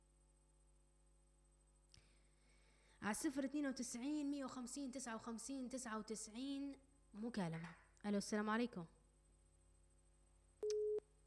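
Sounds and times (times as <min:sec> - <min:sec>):
faint hum: 0:00.0 - 0:11.2
speech: 0:03.0 - 0:09.0
phone line disconnect tone after a radio call drops: 0:10.6 - 0:11.0.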